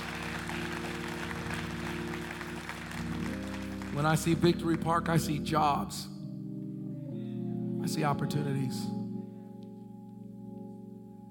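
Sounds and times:
audience clapping: 0:00.0 - 0:05.2
speech: 0:04.0 - 0:06.1, 0:07.9 - 0:09.0.

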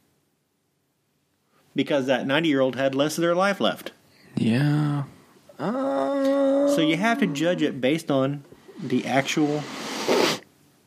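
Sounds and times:
speech: 0:01.8 - 0:09.8
sniffing into a microphone: 0:08.8 - 0:10.4.

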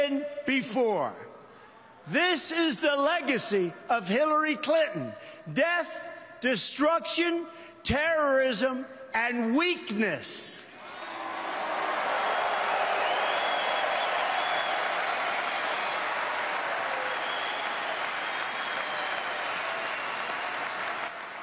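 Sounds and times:
speech: 0:00.0 - 0:01.3, 0:02.0 - 0:10.6
crowd booing: 0:10.8 - 0:21.4.

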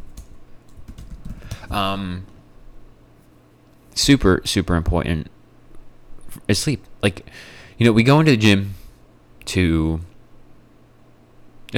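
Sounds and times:
typing on a computer keyboard: 0:00.0 - 0:02.4
speech: 0:01.7 - 0:02.3, 0:04.0 - 0:05.4, 0:06.3 - 0:08.8, 0:09.5 - 0:10.1.

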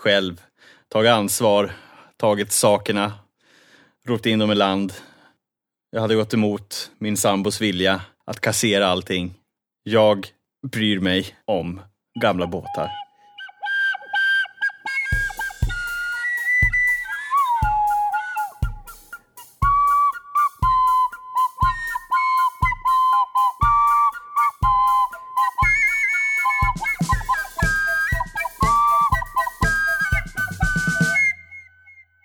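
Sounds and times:
speech: 0:00.0 - 0:03.2, 0:04.0 - 0:05.1, 0:05.9 - 0:13.0
melody whistled with the mouth: 0:12.2 - 0:32.2
steady thumping beat: 0:15.1 - 0:31.4.

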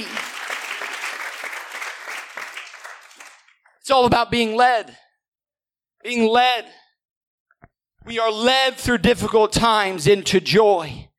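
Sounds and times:
audience clapping hands: 0:00.0 - 0:03.8
speech: 0:03.9 - 0:05.0, 0:06.0 - 0:06.8, 0:08.0 - 0:11.1.

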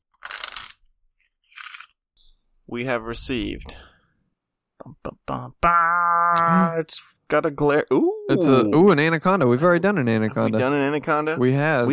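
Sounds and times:
deck of cards being shuffled: 0:00.1 - 0:02.0
speech: 0:02.7 - 0:03.9, 0:04.8 - 0:11.9.

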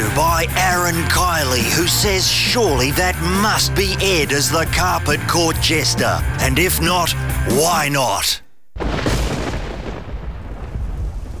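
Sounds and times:
speech: 0:00.4 - 0:08.4
rolling thunder: 0:08.8 - 0:11.3.

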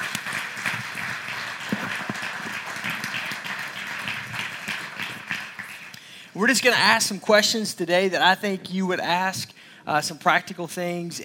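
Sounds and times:
church audience clapping to welcome guests: 0:00.0 - 0:06.2
speech: 0:06.4 - 0:11.2.

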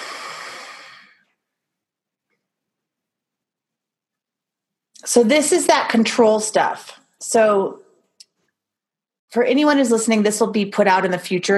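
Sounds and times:
long deep breath out: 0:00.0 - 0:01.4
speech: 0:05.0 - 0:07.8, 0:09.3 - 0:11.5.

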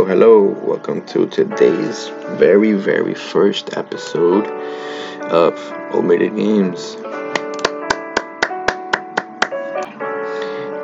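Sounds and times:
speech: 0:00.1 - 0:07.1
hand clap: 0:07.3 - 0:09.6.

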